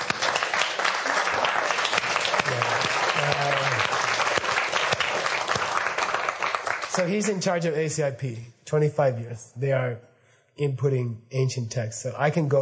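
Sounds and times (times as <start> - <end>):
audience applause: 0.0 - 7.3
speech: 7.0 - 12.5.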